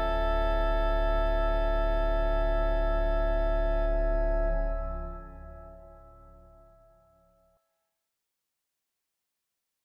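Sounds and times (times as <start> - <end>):
oboe organ: 0.0 - 6.8.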